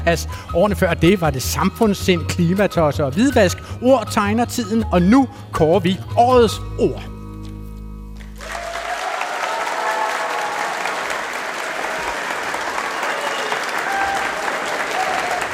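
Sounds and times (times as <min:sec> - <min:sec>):
speech: 0:00.0 - 0:07.1
applause from a large audience of students: 0:08.4 - 0:15.5.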